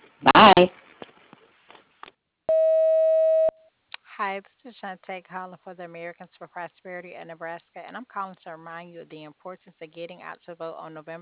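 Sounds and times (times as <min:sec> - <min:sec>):
speech: 0:00.2 - 0:00.8, 0:04.2 - 0:11.2
answering machine beep: 0:02.5 - 0:03.6.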